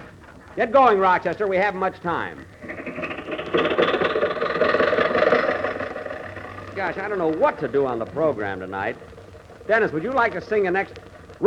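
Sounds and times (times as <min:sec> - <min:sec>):
speech: 0:00.6 - 0:02.8, 0:06.8 - 0:11.4
car engine running: 0:02.5 - 0:11.4.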